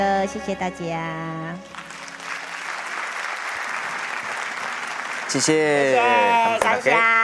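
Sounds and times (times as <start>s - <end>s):
speech: 0.0s - 1.8s, 5.3s - 7.2s
audience applause: 1.7s - 7.0s.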